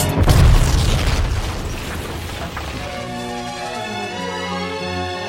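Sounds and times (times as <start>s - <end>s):
bomb explosion: 0.1s - 3.5s.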